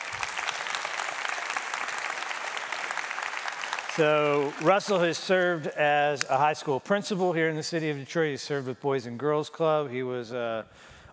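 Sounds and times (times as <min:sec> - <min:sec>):
audience applause welcoming a speaker to the stage: 0:00.0 - 0:05.8
speech: 0:04.0 - 0:11.1.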